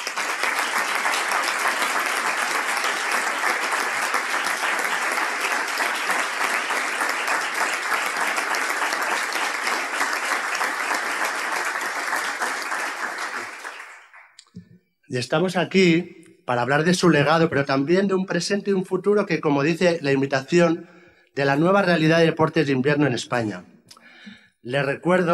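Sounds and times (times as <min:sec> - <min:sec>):
audience applause: 0:00.0 - 0:14.4
speech: 0:15.1 - 0:23.7, 0:24.6 - 0:25.3.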